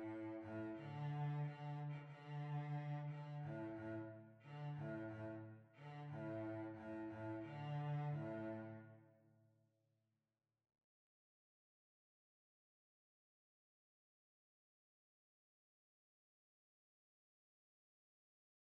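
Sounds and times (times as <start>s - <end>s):
violoncello: 0.0s - 9.1s.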